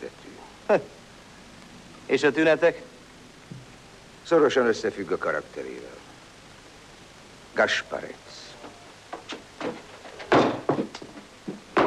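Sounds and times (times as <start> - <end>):
speech: 0.1 - 1.0, 2.1 - 2.9, 4.3 - 6.1, 7.6 - 8.4
heavy footsteps stomping on a wooden floor: 9.1 - 11.8.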